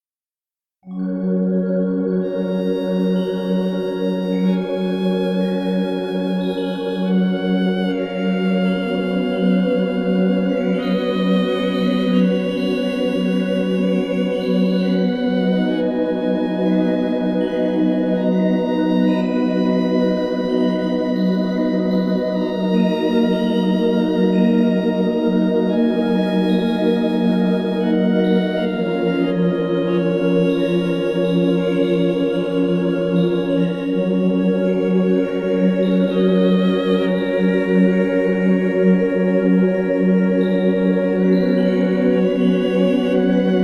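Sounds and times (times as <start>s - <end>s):
sad background music: 0.9s - 43.6s.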